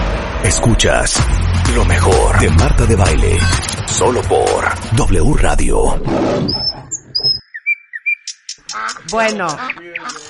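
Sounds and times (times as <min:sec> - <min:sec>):
low rumble: 0:00.0 - 0:06.4
speech: 0:00.4 - 0:06.7, 0:09.1 - 0:10.2
small birds chirping and whistling: 0:06.4 - 0:10.2.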